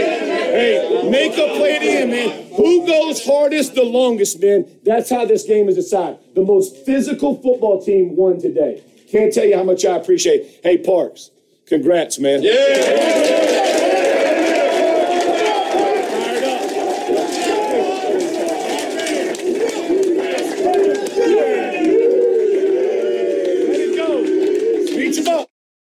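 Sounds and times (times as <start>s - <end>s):
Colts football players cheering and shouting in locker room after a win in Las Vegas: 0.0s - 3.6s, 12.4s - 25.5s
speech: 0.6s - 13.6s.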